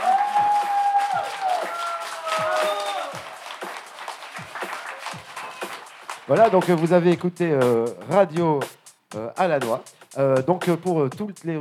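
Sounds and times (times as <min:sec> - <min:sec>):
audience applause: 0:00.0 - 0:06.8
speech: 0:06.3 - 0:11.5.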